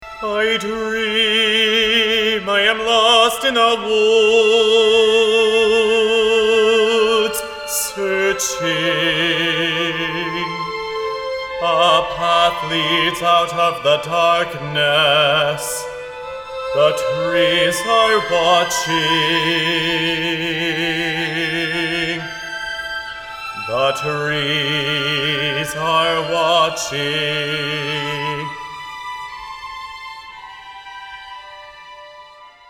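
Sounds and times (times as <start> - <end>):
person singing: 0.0 - 28.8.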